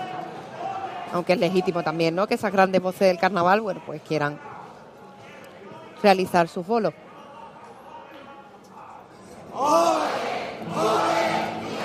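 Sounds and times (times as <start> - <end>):
speech: 1.1 - 4.5, 6.0 - 7.0
audience shouting olé from front rows: 9.5 - 11.8.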